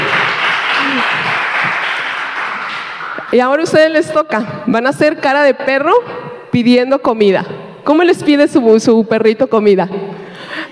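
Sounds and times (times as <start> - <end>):
audience applause: 0.0 - 3.3
speech: 3.3 - 10.0.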